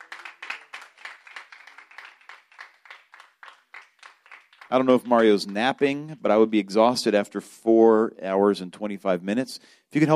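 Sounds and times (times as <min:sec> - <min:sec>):
church congregation clapping a clap offering: 0:00.0 - 0:06.1
speech: 0:04.7 - 0:10.1.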